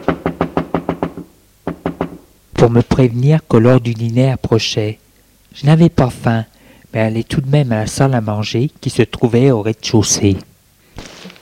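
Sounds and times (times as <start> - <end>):
knocking on a bedroom door: 0.0 - 2.2
speech: 2.6 - 11.1.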